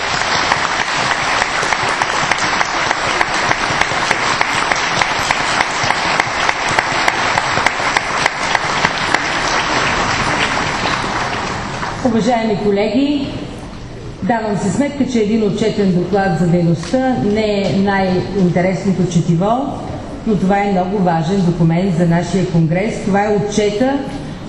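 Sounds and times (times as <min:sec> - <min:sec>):
audience applause: 0:00.0 - 0:12.1
speech: 0:12.2 - 0:13.6, 0:14.2 - 0:24.2.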